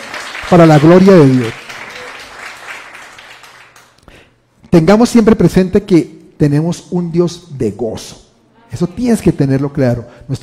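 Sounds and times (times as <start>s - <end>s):
audience applause: 0.0s - 4.0s
speech: 0.5s - 1.6s, 4.7s - 10.4s.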